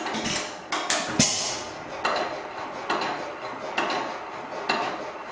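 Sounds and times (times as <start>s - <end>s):
hit and miss engine running: 0.2s - 5.1s.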